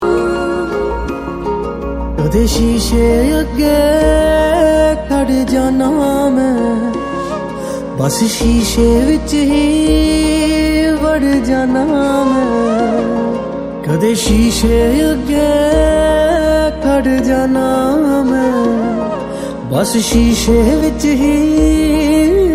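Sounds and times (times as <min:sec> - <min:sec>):
Punjabi song: 0:00.0 - 0:22.5.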